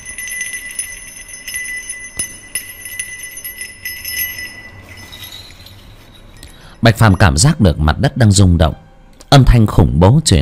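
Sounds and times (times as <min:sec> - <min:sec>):
bright high-pitched jingling bells chiming: 0:00.0 - 0:08.0
speech: 0:06.8 - 0:10.3.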